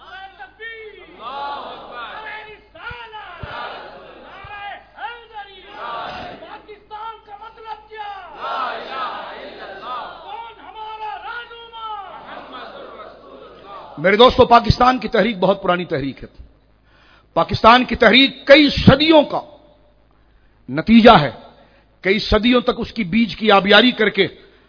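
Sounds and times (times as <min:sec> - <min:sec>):
crowd at a Pakistani political rally shouting a slogan: 0:00.0 - 0:06.8, 0:07.9 - 0:14.1
speech: 0:14.0 - 0:16.5, 0:17.4 - 0:19.5, 0:20.7 - 0:21.4, 0:22.0 - 0:24.4.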